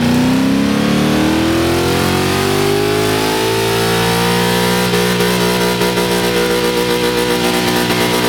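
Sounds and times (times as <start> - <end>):
car engine revving: 0.0 - 8.2.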